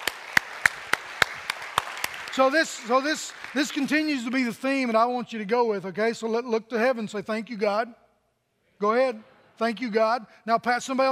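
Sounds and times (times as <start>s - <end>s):
audience clapping: 0.0s - 4.6s
speech: 2.4s - 8.0s, 8.8s - 11.1s.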